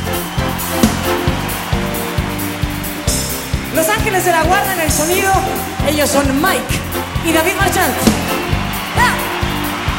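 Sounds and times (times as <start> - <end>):
audience applause: 0.0 - 9.9
speech: 3.8 - 8.4.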